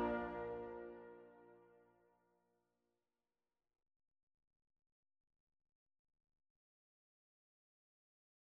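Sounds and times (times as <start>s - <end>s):
national anthem: 0.0s - 1.0s.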